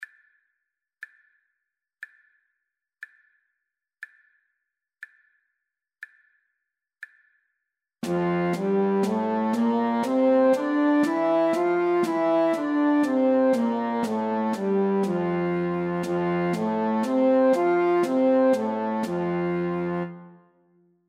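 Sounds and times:
slow natural music in F major: 8.0 - 20.7.

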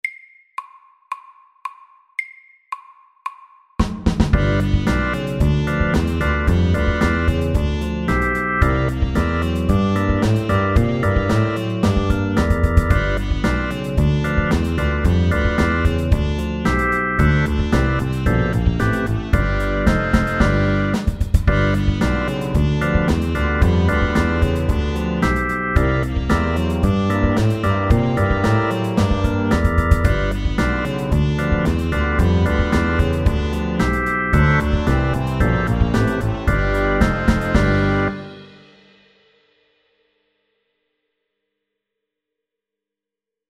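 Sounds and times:
fast 8 bar blues: 3.8 - 38.5.

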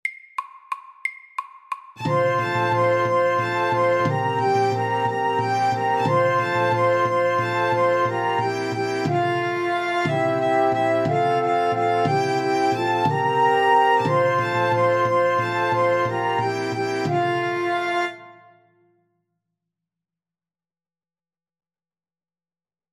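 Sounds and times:
Irish melody: 2.0 - 18.6.

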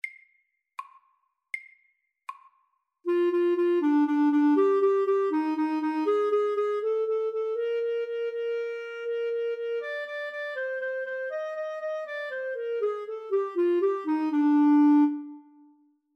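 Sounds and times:
etude: 3.1 - 15.7.

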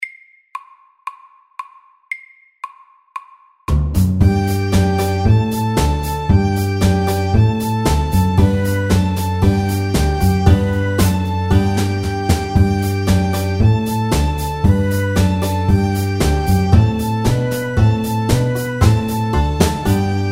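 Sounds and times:
square dance music: 3.9 - 20.3.

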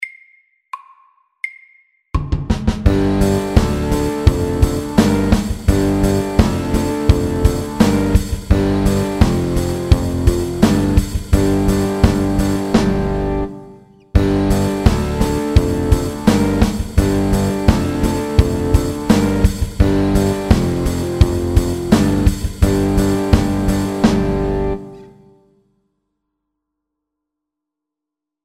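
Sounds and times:
slow mountain rock music: 2.9 - 25.3.

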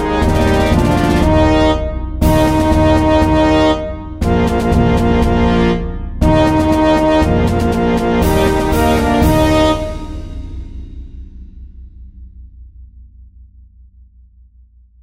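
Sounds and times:
fanfare: 0.0 - 10.4
march music: 0.0 - 10.8.

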